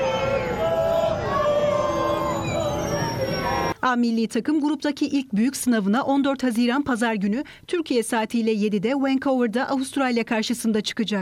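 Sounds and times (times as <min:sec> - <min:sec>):
fans cheering and chanting a welcome: 0:00.0 - 0:03.8
speech: 0:03.8 - 0:11.2.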